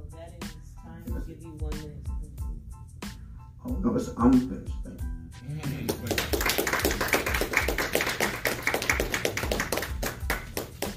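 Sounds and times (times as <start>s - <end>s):
speech: 1.3s - 2.1s, 3.7s - 5.1s
audience applauding a speaker after a talk: 5.7s - 10.9s.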